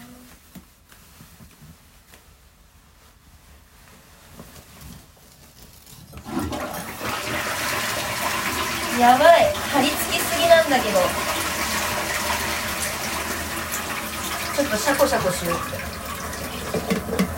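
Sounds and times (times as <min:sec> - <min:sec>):
faint shuffling: 0:00.0 - 0:06.2
toilet flushing: 0:06.2 - 0:17.3
speech: 0:09.0 - 0:11.3, 0:14.6 - 0:15.9.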